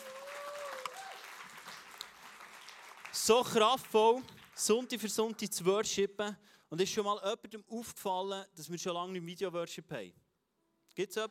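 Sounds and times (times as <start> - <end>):
audience applause for the band: 0.0 - 5.4
speech: 3.2 - 10.2, 11.0 - 11.3.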